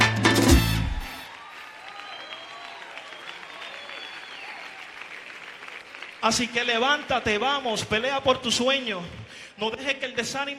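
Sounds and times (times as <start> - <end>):
audience applause: 1.0 - 9.0
speech: 6.2 - 10.5.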